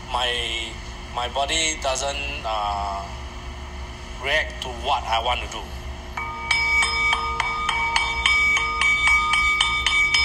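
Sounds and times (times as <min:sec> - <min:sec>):
speech: 0:00.1 - 0:03.2, 0:04.2 - 0:05.8
singing bowl ringing: 0:06.2 - 0:10.2.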